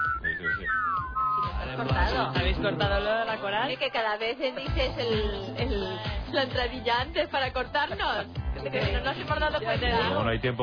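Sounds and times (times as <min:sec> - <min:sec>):
person whistling a short wavering tune: 0:00.0 - 0:01.6
speech: 0:01.7 - 0:10.6.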